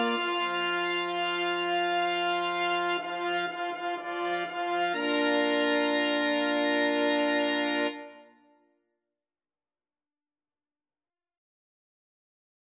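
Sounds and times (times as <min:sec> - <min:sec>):
fanfare: 0:00.0 - 0:08.3.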